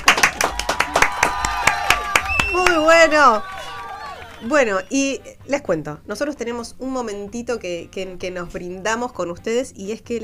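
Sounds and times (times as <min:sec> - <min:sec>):
crowd applauding: 0:00.0 - 0:04.9
faint voices and cheers: 0:00.2 - 0:04.9
speech: 0:03.0 - 0:03.5, 0:04.4 - 0:10.2.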